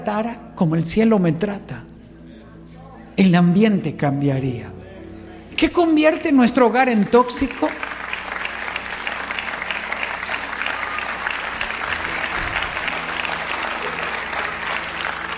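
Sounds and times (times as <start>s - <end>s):
speech: 0.0s - 1.9s, 3.2s - 4.8s, 5.6s - 7.9s
audience clapping: 7.2s - 15.3s.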